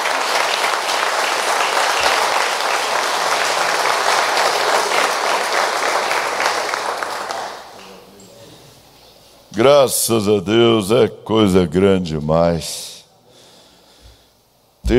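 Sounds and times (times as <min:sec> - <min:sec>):
room full of people applauding: 0:00.0 - 0:08.2
speech: 0:09.6 - 0:12.9.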